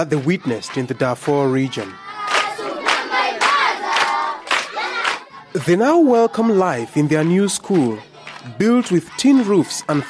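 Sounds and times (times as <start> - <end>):
speech: 0.0 - 2.0, 5.5 - 10.0
Sudanese children singing boisterously in chorus at Meche refugee camp: 0.0 - 10.0.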